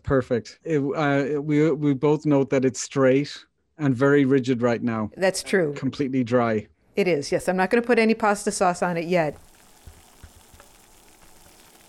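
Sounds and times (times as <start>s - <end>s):
speech: 0.1s - 9.5s
pot of water starting to boil: 7.8s - 11.8s.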